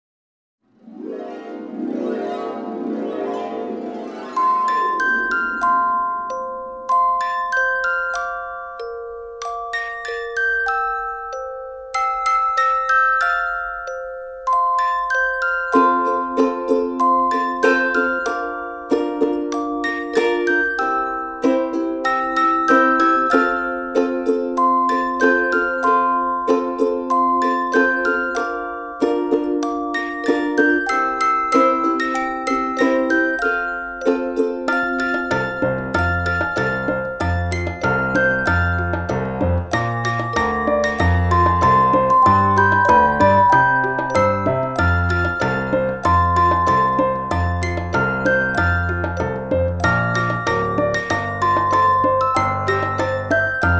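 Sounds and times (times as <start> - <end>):
Christmas song: 0.7 - 53.7.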